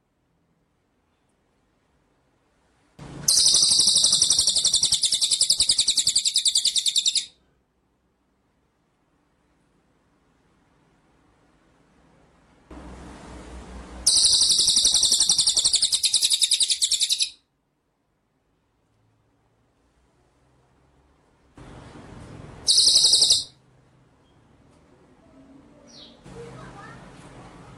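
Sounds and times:
white-rumped shama buzzy trill: 3.0 - 7.3, 14.0 - 17.4, 22.6 - 23.6.

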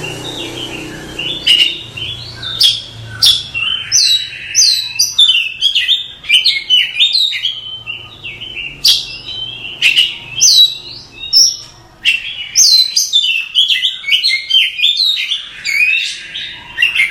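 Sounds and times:
Oriental magpie-robin song: 0.0 - 17.0.

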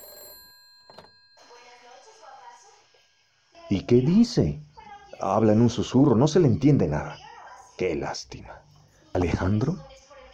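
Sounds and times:
telephone ringing in a radio play adaptation of Pervertimento: 0.0 - 2.2
speech: 3.7 - 4.6, 5.2 - 7.2, 7.8 - 9.9.

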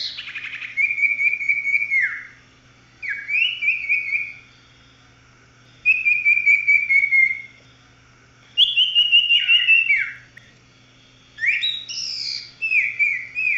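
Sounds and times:
Oriental magpie-robin whistling song: 0.0 - 2.4, 3.0 - 4.4, 5.8 - 7.6, 8.6 - 10.5, 11.4 - 13.5.

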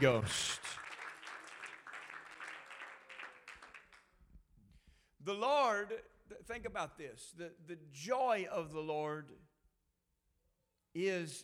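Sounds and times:
speech: 0.0 - 0.5, 5.3 - 9.5, 10.9 - 11.4
church congregation clapping hands during a sermon: 0.0 - 4.4.

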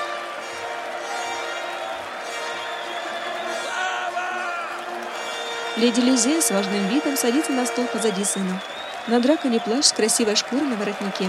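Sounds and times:
large crowd clapping: 0.0 - 11.2
speech: 5.8 - 11.2.

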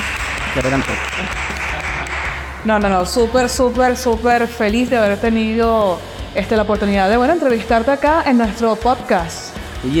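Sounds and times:
applause: 0.0 - 2.5
speech: 0.6 - 1.9, 2.6 - 9.9.

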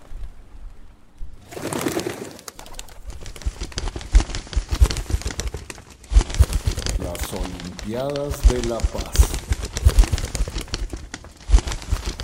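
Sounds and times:
large flock of hundreds of pigeons flapping wings overhead: 1.4 - 12.2
speech: 7.9 - 9.4.

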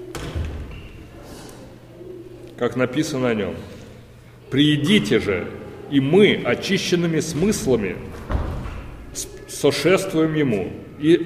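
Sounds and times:
speech: 2.6 - 3.8, 4.5 - 8.2, 9.2 - 11.2
door closing: 7.3 - 9.1.

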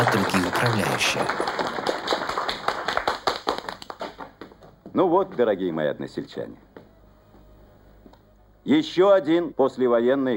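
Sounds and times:
speech: 0.0 - 1.6, 5.0 - 6.7, 8.7 - 10.3
audience applause: 0.0 - 4.4.

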